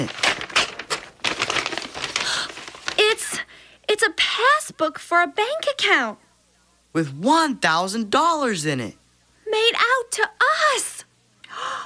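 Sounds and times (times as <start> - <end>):
speech: 0.0 - 0.2, 4.0 - 6.2, 6.9 - 10.9
paper envelope being torn open: 0.0 - 3.3.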